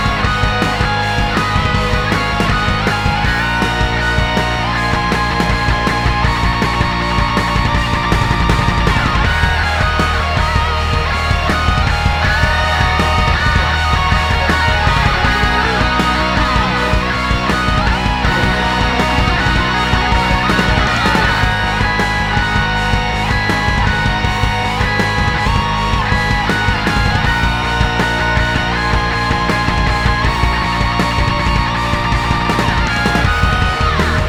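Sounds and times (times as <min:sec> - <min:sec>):
rock cover song: 0:00.0 - 0:34.2.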